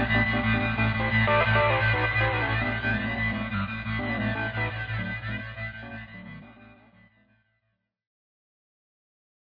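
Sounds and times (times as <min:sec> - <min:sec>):
Moog synthesizer: 0:00.0 - 0:06.9.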